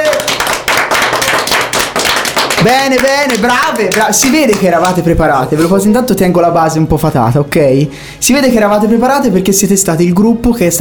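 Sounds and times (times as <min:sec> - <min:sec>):
applause during a party game: 0:00.0 - 0:05.1
speech: 0:02.6 - 0:10.7.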